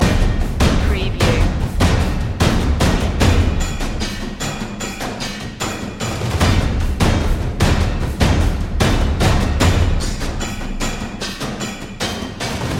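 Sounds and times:
tense tom drum loop: 0.0s - 12.7s.

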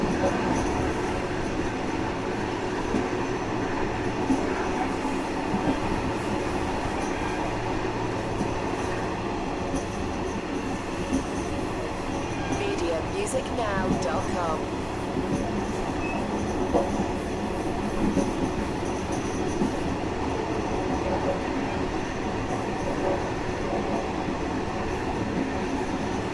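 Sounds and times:
old train ride ambience: 0.0s - 26.3s.

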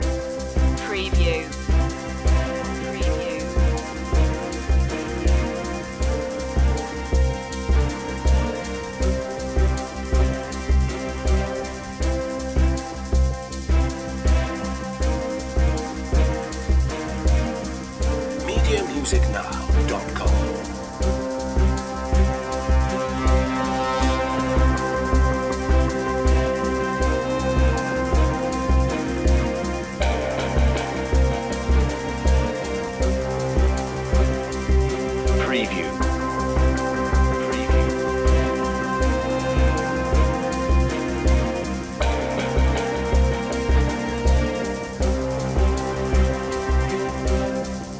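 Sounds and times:
informative news music loop: 0.0s - 47.9s.

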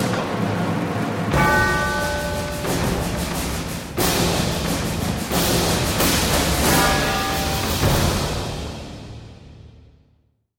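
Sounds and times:
percussion: 0.0s - 10.1s.

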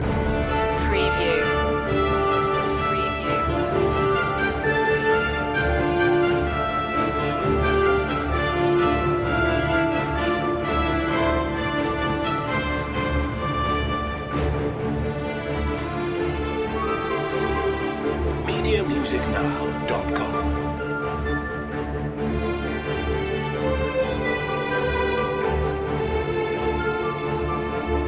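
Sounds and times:
epic medieval tale music: 0.0s - 28.0s.

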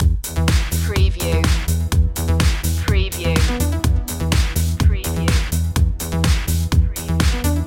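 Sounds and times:
music loop: 0.0s - 7.6s.

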